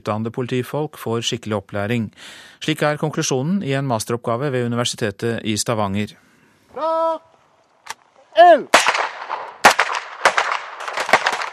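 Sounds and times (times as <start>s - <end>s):
speech: 0.0s - 7.3s, 8.4s - 8.9s
MP5 submachine gun fire at Kalland shooting range in Sveio: 8.7s - 11.5s.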